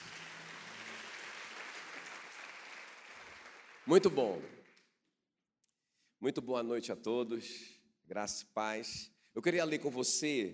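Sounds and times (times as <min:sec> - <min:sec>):
crowd applause: 0:00.0 - 0:04.8
speech: 0:03.9 - 0:04.6, 0:06.2 - 0:10.5.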